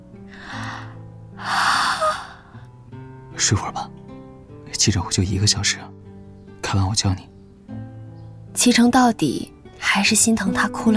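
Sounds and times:
person yawning: 0:00.4 - 0:02.6
speech: 0:03.4 - 0:04.0, 0:04.8 - 0:06.0, 0:06.7 - 0:07.3, 0:08.6 - 0:10.9.

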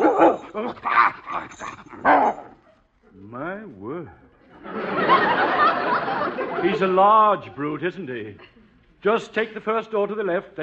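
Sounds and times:
St. Bernard dog barking and whimpering: 0:00.0 - 0:02.8
laughter: 0:04.4 - 0:08.8
speech: 0:06.8 - 0:10.6.

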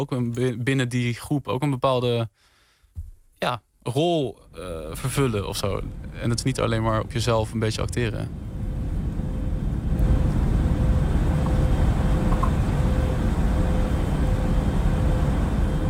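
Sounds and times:
speech: 0:00.0 - 0:02.5, 0:03.4 - 0:08.5
airplane cabin noise heard from inside: 0:04.6 - 0:15.8.

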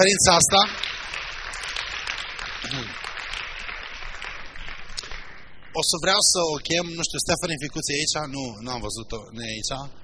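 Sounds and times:
speech: 0:00.0 - 0:00.9, 0:05.8 - 0:10.0
church conference congregation applause: 0:00.0 - 0:06.9.

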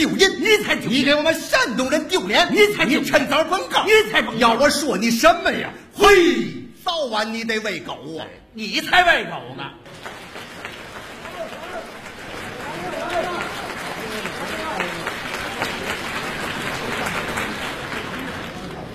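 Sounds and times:
speech: 0:00.0 - 0:10.1
audience applause: 0:09.9 - 0:18.9.

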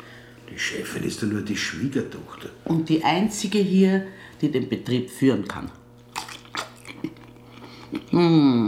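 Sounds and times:
speech: 0:00.5 - 0:05.8, 0:08.1 - 0:08.6
chewing and biting hot Frankfurter sausages: 0:05.4 - 0:08.2.

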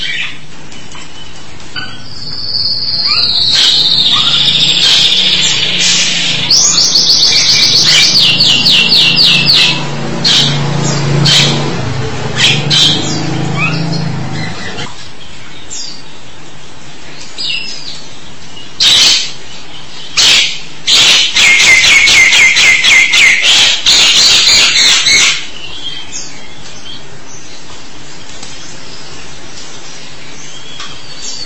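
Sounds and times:
starling singing: 0:01.1 - 0:14.9, 0:18.6 - 0:27.6
speech: 0:03.2 - 0:03.7.

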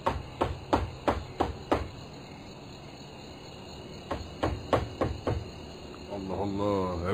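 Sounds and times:
knocking on a door: 0:00.0 - 0:02.0, 0:04.0 - 0:05.6
insect chirring: 0:00.0 - 0:07.1.

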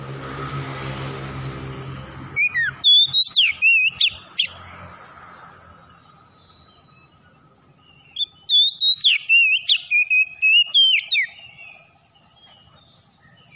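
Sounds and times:
oriental magpie-robin whistling: 0:02.4 - 0:04.6, 0:08.0 - 0:11.9.

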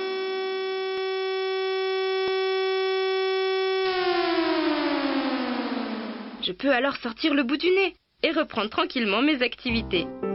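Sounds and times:
civil alert siren end-of-alert signal: 0:00.0 - 0:06.4
speech: 0:06.4 - 0:10.2.

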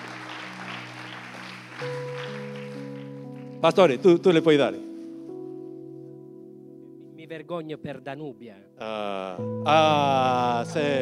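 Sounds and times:
audience applause: 0:00.0 - 0:03.6
speech: 0:01.8 - 0:02.1, 0:03.6 - 0:04.9, 0:07.4 - 0:10.9.

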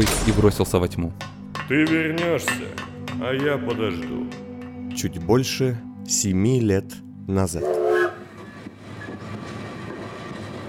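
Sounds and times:
speech: 0:00.0 - 0:04.4, 0:05.0 - 0:07.8
passenger train rumbling through tunnels: 0:07.6 - 0:10.6.

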